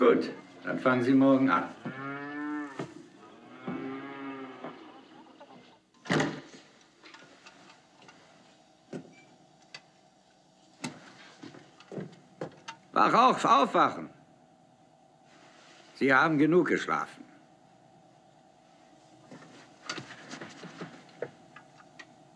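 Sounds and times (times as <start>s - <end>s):
speech: 0.0s - 1.8s, 13.0s - 14.2s, 16.0s - 17.2s
quiet hum: 0.0s - 22.3s
cows mooing: 1.7s - 5.4s.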